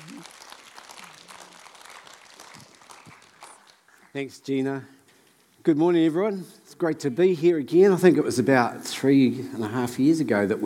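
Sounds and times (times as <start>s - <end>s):
audience clapping: 0.0s - 4.8s
speech: 4.2s - 5.0s, 5.6s - 10.6s.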